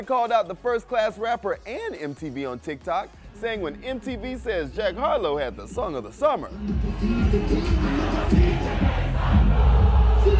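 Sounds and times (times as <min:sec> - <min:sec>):
speech: 0:00.0 - 0:09.0
crowd singing along at concert: 0:06.5 - 0:10.3.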